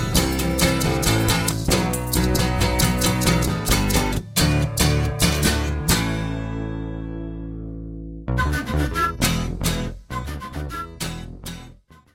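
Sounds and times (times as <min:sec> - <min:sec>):
acoustic guitar: 0:00.0 - 0:12.1
bass: 0:00.0 - 0:12.1
flute: 0:08.3 - 0:12.1.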